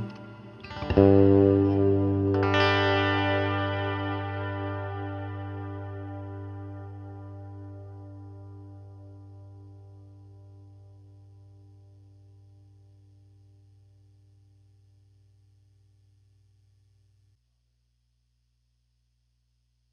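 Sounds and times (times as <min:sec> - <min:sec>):
bluesy R&B clean Tele style electric guitar through reverb pedal: 0:00.0 - 0:12.9.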